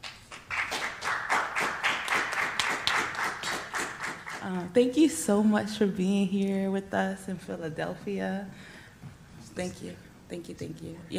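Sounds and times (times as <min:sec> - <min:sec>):
modest gathering clapping at a book event at the Free Library in Philadelphia: 0:00.0 - 0:04.7
speech: 0:04.5 - 0:08.7, 0:09.6 - 0:11.1.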